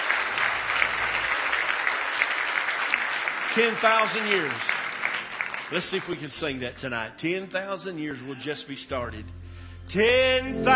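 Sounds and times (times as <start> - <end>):
audience hand clapping applause: 0.0 - 6.5
speech: 3.6 - 4.8, 5.7 - 10.7.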